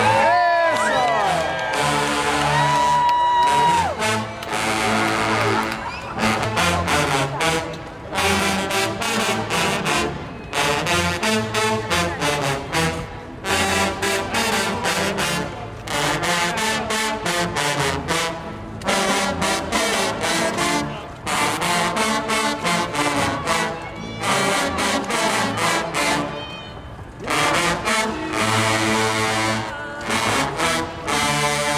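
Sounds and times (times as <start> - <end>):
dozens of trombones played outdoors in tribute: 0.0 - 26.4, 27.2 - 31.7.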